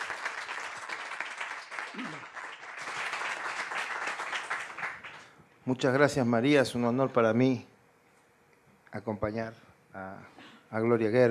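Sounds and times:
loud audience applause: 0:00.0 - 0:05.3
speech: 0:05.7 - 0:07.7, 0:08.9 - 0:11.2.

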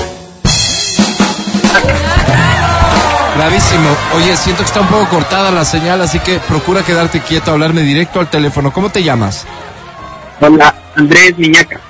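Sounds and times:
crowd voices: 0:01.7 - 0:11.8
applause: 0:02.1 - 0:08.8
speech: 0:03.4 - 0:09.7, 0:10.4 - 0:11.8.

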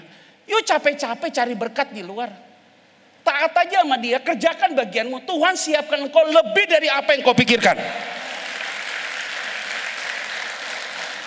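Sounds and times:
speech: 0:00.5 - 0:02.5, 0:03.3 - 0:08.2
audience clapping hands: 0:08.0 - 0:11.2.

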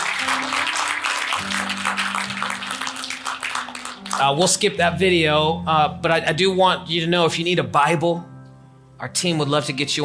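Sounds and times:
large crowd clapping: 0:00.0 - 0:04.8
speech: 0:04.2 - 0:08.3, 0:09.0 - 0:10.0
sustained low keyboard or organ chords: 0:04.8 - 0:08.7.

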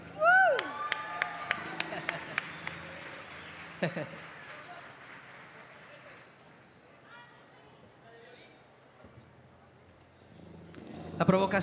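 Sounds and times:
audience applause: 0:00.0 - 0:06.7
laughter: 0:01.5 - 0:04.8
speech: 0:03.8 - 0:04.3, 0:11.2 - 0:11.6.

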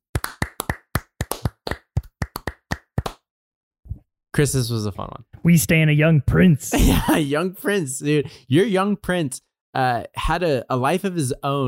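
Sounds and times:
hand clapping: 0:00.0 - 0:03.3
speech: 0:04.4 - 0:11.6.

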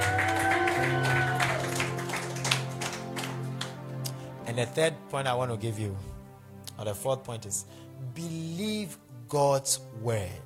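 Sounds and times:
audience clapping: 0:00.0 - 0:04.2
speech: 0:04.6 - 0:06.1, 0:06.8 - 0:10.4.

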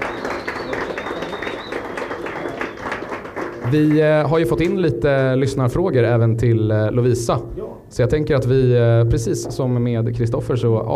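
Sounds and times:
applause: 0:00.0 - 0:05.4
speech: 0:03.7 - 0:10.9.

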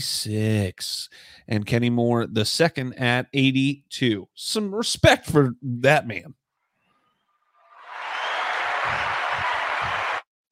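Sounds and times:
speech: 0:00.0 - 0:06.4
applause sound effect: 0:07.8 - 0:10.3.

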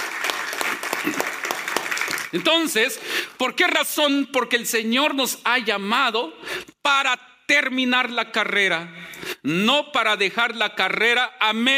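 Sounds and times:
audience applause: 0:00.0 - 0:02.5
speech: 0:02.3 - 0:11.7.

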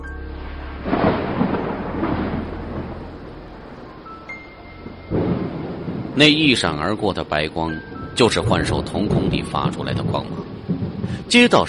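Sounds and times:
low rolling thunder: 0:00.0 - 0:11.6
steady heavy rain: 0:00.0 - 0:11.6
speech: 0:06.2 - 0:10.5, 0:11.1 - 0:11.6.

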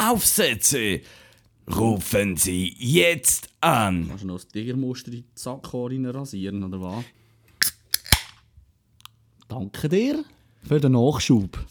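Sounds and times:
speech: 0:00.0 - 0:07.2, 0:09.5 - 0:11.6
beer can being cracked open: 0:07.6 - 0:08.4.

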